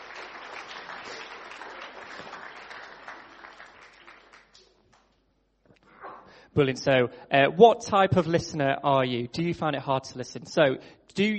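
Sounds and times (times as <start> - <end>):
audience applause: 0.0 - 4.7
speech: 6.6 - 11.3.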